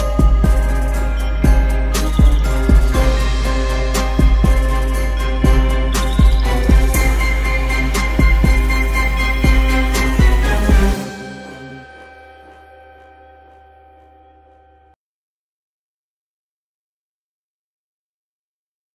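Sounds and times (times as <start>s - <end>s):
mysterious instrumental music: 0.0s - 15.0s.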